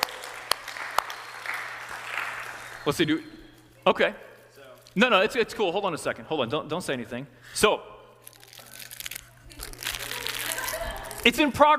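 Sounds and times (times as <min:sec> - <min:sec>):
audience applause: 0:00.0 - 0:03.1
speech: 0:02.8 - 0:04.3, 0:05.0 - 0:07.9, 0:11.2 - 0:11.7.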